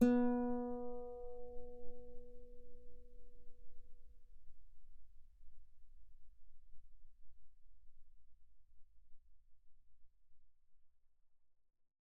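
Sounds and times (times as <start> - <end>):
guitar B3 note played mezzo forte: 0.0 - 1.4.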